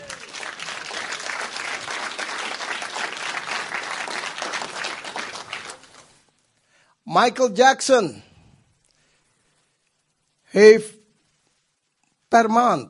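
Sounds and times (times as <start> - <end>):
audience applause: 0.0 - 6.2
speech: 7.2 - 8.3, 10.6 - 11.0, 12.4 - 12.8.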